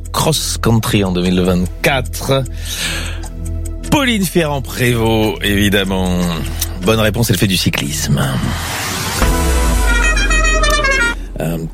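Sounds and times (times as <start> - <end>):
speech: 0.2 - 3.2, 3.9 - 8.9, 11.4 - 11.7
car passing by: 8.1 - 10.3
car horn: 9.2 - 11.3.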